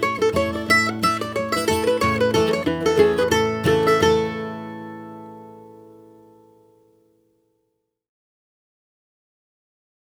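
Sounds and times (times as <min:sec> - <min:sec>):
embellished folk tune: 0:00.0 - 0:06.5.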